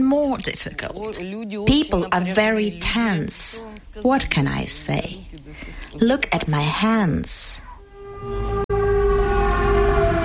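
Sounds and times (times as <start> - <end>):
speech: 0.0 - 5.4, 6.0 - 8.4
air raid siren wailing: 7.7 - 10.2.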